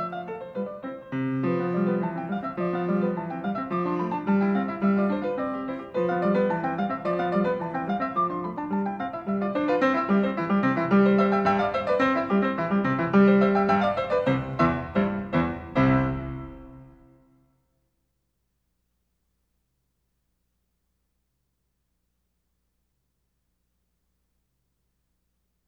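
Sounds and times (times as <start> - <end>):
piano sonata rondo: 0.0 - 17.5.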